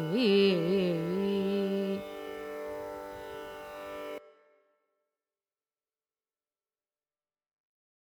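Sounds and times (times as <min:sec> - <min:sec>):
carnatic music in raga kambhoji: 0:00.0 - 0:04.8.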